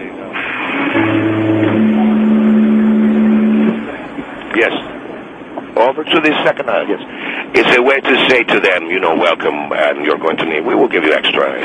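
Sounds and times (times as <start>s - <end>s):
foghorn blast: 0.7s - 3.9s
speech: 5.8s - 11.6s.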